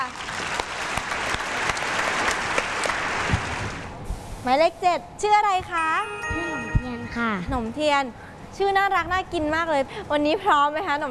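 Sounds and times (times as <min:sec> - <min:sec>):
crowd clapping: 0:00.0 - 0:03.8
speech: 0:04.4 - 0:11.0.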